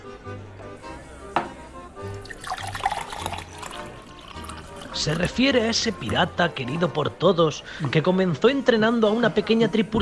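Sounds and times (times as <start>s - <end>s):
wine poured into a glass in a tavern: 2.1s - 6.2s
speech: 5.0s - 10.0s.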